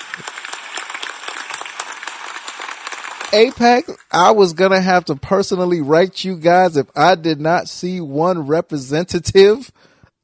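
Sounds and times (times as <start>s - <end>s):
round of applause: 0.0s - 4.7s
speech: 3.3s - 9.9s.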